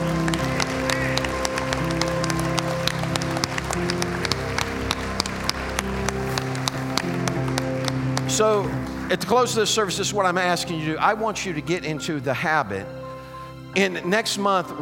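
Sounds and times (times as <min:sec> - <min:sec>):
audience hand clapping: 0:00.0 - 0:10.0
speech: 0:08.4 - 0:13.0, 0:13.8 - 0:14.8.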